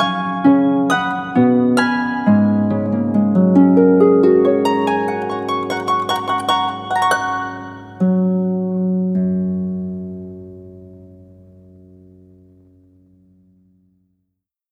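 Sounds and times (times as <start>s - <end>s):
Christmas song: 0.0s - 9.9s.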